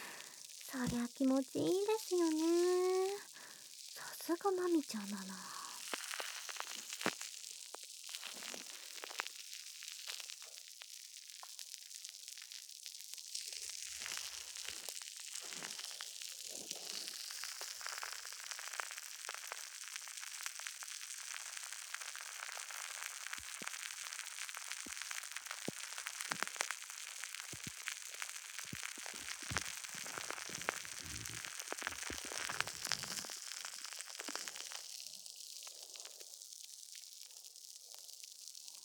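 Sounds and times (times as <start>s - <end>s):
soap lather foaming against the ear: 0.0s - 9.4s, 13.9s - 35.0s
speech: 0.7s - 2.9s, 4.3s - 5.6s.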